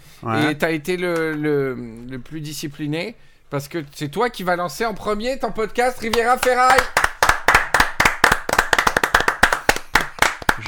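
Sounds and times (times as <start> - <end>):
speech: 0.2 - 7.1
hand clapping: 6.0 - 10.6.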